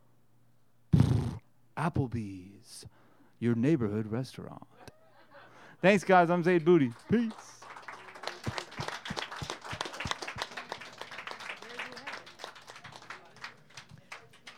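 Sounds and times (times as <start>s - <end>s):
speech: 1.8s - 4.9s, 5.8s - 7.6s
audience applause: 6.4s - 14.5s.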